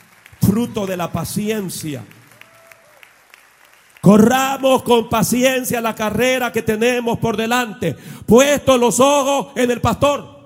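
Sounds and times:
audience applauding: 0.0 - 4.6
speech: 0.5 - 2.2, 4.0 - 10.3.

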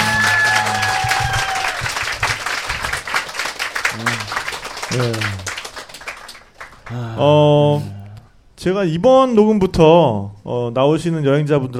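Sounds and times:
audience applause: 0.0 - 7.3
speech: 4.9 - 5.4, 6.9 - 8.0, 8.6 - 11.7.

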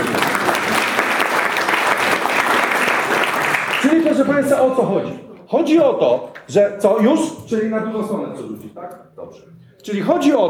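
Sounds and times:
audience applause: 0.0 - 4.3
speech: 4.3 - 10.4.

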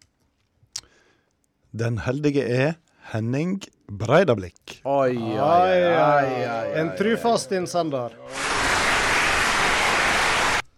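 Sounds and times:
speech: 1.7 - 8.4
applause sound effect: 8.3 - 10.7.

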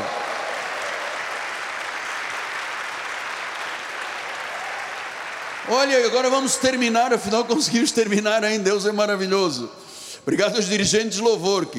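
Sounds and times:
audience applause: 0.0 - 7.9
speech: 5.7 - 11.7.

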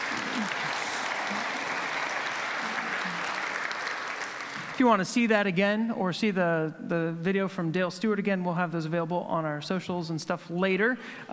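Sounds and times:
faint crowd murmur: 0.0 - 3.7
audience clapping: 0.0 - 5.2
speech: 4.8 - 11.3.

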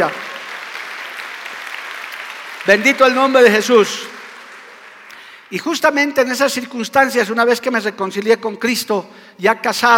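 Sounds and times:
speech: 0.0 - 0.2, 2.6 - 4.1, 5.5 - 9.9
audience applauding: 0.0 - 5.5.

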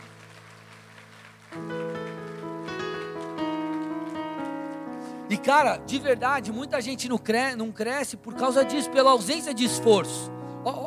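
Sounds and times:
audience applause: 0.0 - 4.7
sustained keyboard chords: 0.0 - 10.8
speech: 5.3 - 10.8.

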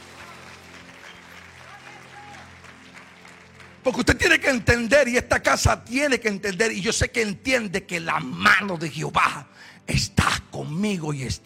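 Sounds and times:
audience applause: 0.0 - 4.6
speech: 3.8 - 11.4.

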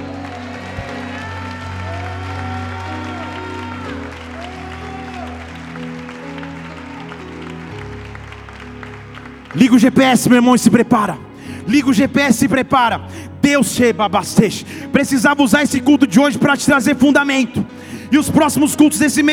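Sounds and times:
applause: 0.0 - 11.7
speech: 9.5 - 19.3.

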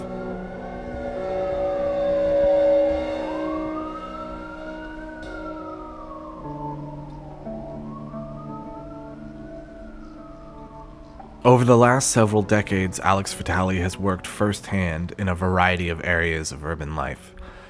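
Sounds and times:
emergency siren wailing in an industrial city street: 0.0 - 13.9
speech: 11.5 - 17.4.

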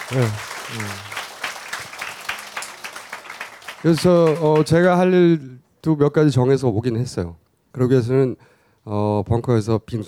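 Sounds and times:
audience applause: 0.0 - 5.0
speech: 0.1 - 1.2, 3.8 - 10.0.

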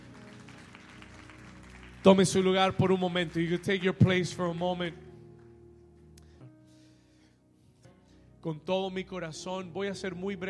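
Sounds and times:
audience applause: 0.0 - 4.3
speech: 2.0 - 5.1, 8.4 - 10.4.

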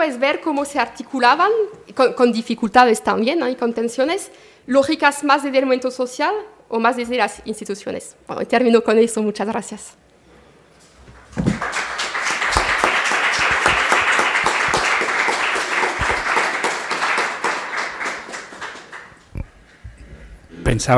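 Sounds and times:
speech: 0.0 - 10.0, 20.7 - 20.9
crowd applause: 11.2 - 19.2.

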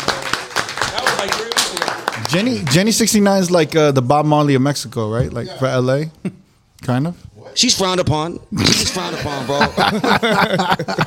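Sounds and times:
people clapping: 0.0 - 3.6
speech: 1.2 - 11.0
laughter: 6.3 - 7.8.

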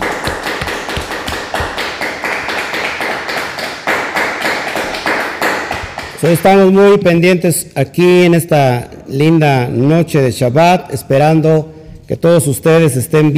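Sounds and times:
audience applause: 0.0 - 6.2
speech: 6.2 - 13.3.

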